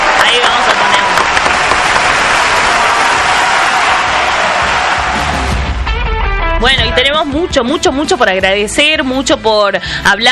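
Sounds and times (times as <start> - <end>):
studio audience applause: 0.0 - 6.0
speech: 7.2 - 10.2.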